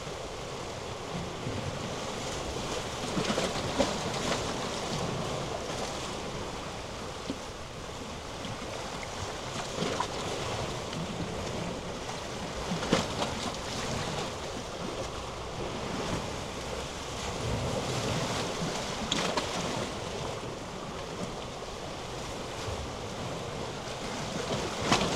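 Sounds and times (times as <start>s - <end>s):
small gurgling waves at a breakwater: 0.0s - 25.1s.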